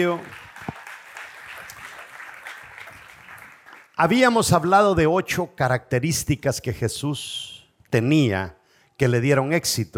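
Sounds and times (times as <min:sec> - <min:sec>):
speech: 0:00.0 - 0:00.4, 0:04.0 - 0:09.9
audience applause: 0:00.0 - 0:04.0.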